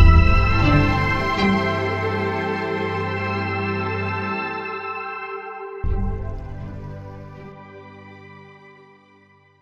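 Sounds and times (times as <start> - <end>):
dramatic strings: 0.0 - 4.7, 5.8 - 7.6.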